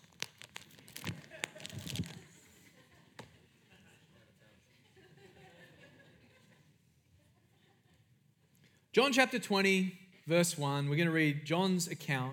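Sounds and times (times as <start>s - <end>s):
Bible pages turning in church: 0.0s - 2.4s
laughter: 2.5s - 6.7s
speech: 9.0s - 12.3s.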